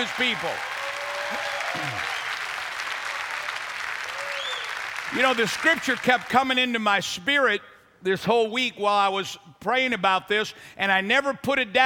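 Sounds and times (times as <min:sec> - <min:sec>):
speech: 0:00.0 - 0:00.7, 0:01.3 - 0:02.2, 0:05.1 - 0:11.8
voices cheering: 0:00.0 - 0:05.6
audience clapping: 0:00.0 - 0:06.6.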